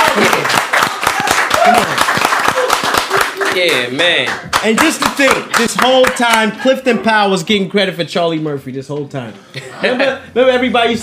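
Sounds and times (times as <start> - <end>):
audience clapping: 0.0 - 6.6
speech: 1.7 - 2.0, 3.6 - 11.0.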